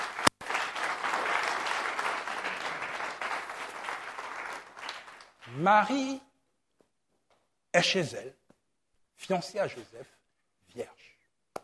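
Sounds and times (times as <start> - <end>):
congregation applauding during a church service: 0.0 - 6.1
speech: 5.6 - 6.3, 7.7 - 8.4, 9.2 - 10.2, 10.8 - 11.0.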